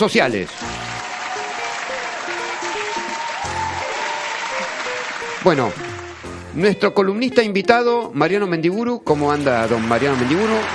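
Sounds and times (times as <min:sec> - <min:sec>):
speech: 0:00.0 - 0:00.7, 0:05.4 - 0:05.9, 0:06.6 - 0:10.7
audience applause: 0:00.5 - 0:06.4, 0:09.2 - 0:10.7.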